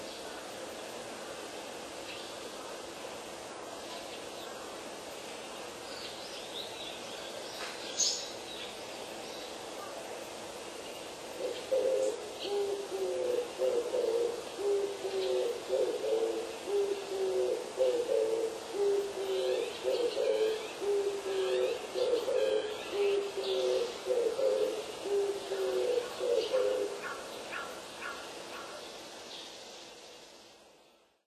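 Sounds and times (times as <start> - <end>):
turtledove cooing: 11.4 - 27.0.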